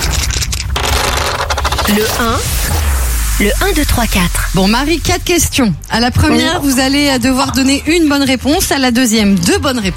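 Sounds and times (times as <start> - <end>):
dice being rolled: 0.0 - 2.0
speech: 1.9 - 2.7, 3.4 - 9.9.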